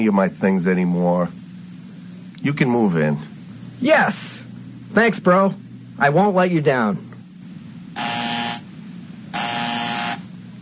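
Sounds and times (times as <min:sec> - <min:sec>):
speech: 0:00.0 - 0:01.4, 0:02.4 - 0:07.1
low hum: 0:00.0 - 0:10.6
harsh electric door buzzer: 0:08.0 - 0:08.7, 0:09.3 - 0:10.3.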